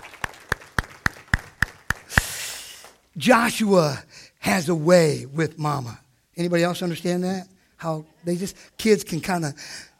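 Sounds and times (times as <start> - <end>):
audience applause: 0.0 - 2.3
speech: 3.2 - 9.9.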